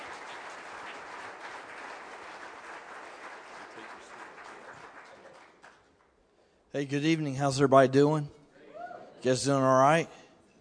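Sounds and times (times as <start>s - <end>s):
audience applause welcoming a speaker at a Central Assembly gathering: 0.0s - 5.9s
speech: 6.7s - 8.4s, 9.2s - 10.2s.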